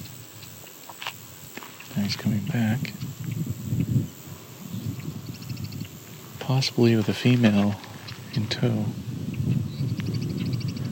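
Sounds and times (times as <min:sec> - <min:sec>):
Savannah sparrow singing: 0:01.9 - 0:10.9
speech: 0:02.0 - 0:03.1, 0:06.5 - 0:07.8, 0:08.4 - 0:09.0.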